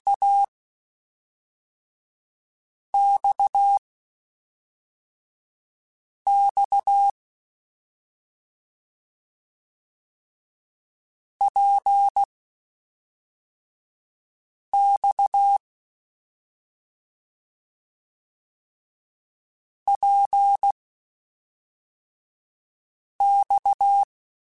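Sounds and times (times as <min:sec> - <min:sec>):
CW Morse code groups in mixed short runs: 0:00.1 - 0:00.5, 0:03.0 - 0:03.8, 0:06.3 - 0:07.1, 0:14.8 - 0:15.6, 0:19.9 - 0:20.7, 0:23.2 - 0:24.1.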